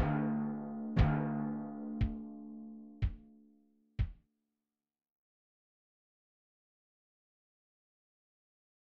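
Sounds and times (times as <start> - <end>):
solemn rhythmic music: 0.0 - 4.2.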